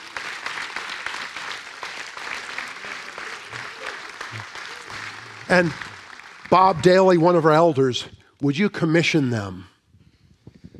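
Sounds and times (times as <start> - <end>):
audience applause: 0.0 - 7.9
speech: 5.5 - 5.9, 6.5 - 9.7.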